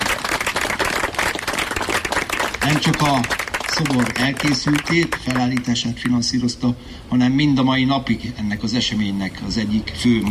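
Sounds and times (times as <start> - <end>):
audience applauding at a memorial ceremony: 0.0 - 6.2
speech: 2.6 - 10.3.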